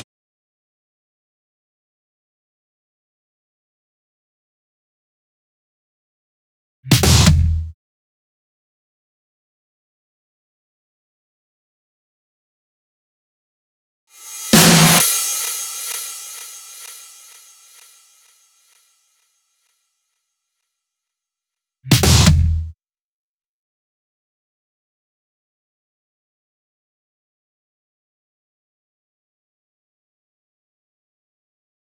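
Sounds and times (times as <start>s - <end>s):
drum fills: 6.9s - 7.6s, 14.2s - 17.9s.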